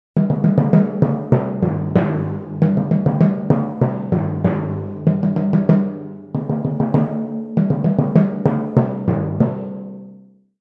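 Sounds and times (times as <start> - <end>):
timpani: 0.2 - 10.2.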